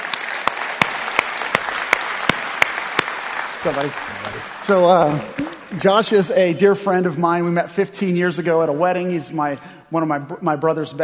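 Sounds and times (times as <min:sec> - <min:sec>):
audience applause welcoming a guest to the stage: 0:00.0 - 0:06.2
speech: 0:03.6 - 0:11.0.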